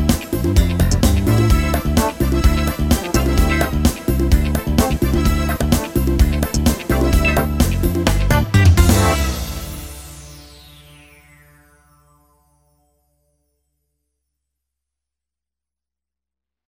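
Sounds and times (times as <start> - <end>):
funky arranger keyboard music: 0.0 - 10.7.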